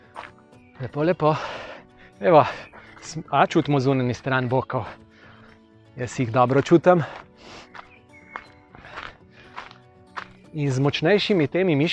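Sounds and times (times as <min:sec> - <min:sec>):
footsteps of people walking after a running strength workout: 0:00.0 - 0:00.5, 0:06.5 - 0:10.4
speech: 0:00.8 - 0:05.0, 0:06.0 - 0:07.7, 0:10.6 - 0:11.9.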